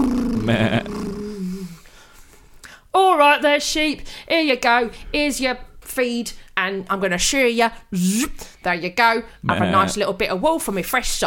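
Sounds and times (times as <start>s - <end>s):
speech: 0.0s - 1.0s, 3.6s - 11.2s
voice imitating a rumbling tractor engine: 9.4s - 10.0s.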